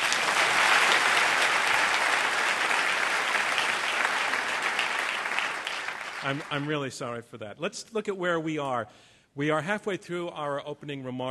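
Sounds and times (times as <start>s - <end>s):
audience applause: 0.0s - 6.8s
speech: 6.2s - 11.3s.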